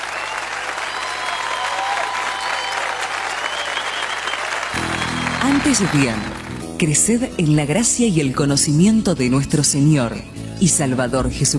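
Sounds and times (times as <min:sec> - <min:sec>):
audience applause: 0:00.0 - 0:06.8
speech: 0:05.6 - 0:11.5.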